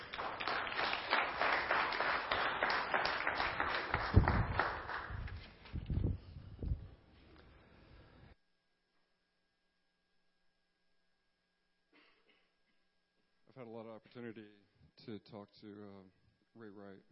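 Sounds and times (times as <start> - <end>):
audience clapping welcoming a speaker to the stage at a church service: 0.0 - 5.5
speech: 13.7 - 17.0.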